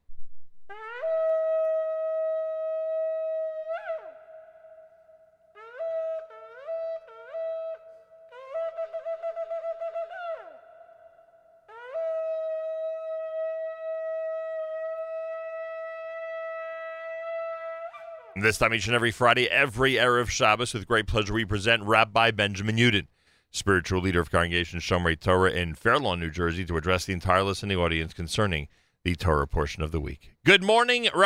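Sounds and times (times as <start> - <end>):
shofar being blown: 0.7 - 10.7, 11.7 - 18.4
speech: 18.4 - 31.2.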